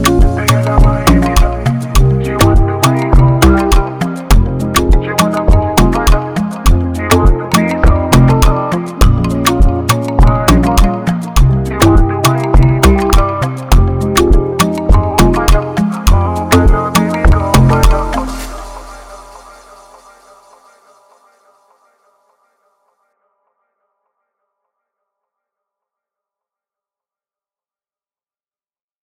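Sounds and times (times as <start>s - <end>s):
Afrobeat type beat: 0.0s - 20.6s.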